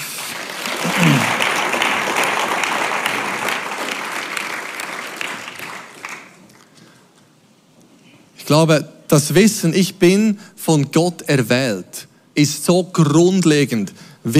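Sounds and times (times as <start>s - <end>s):
crowd applause: 0.0s - 6.7s
speech: 8.5s - 14.3s.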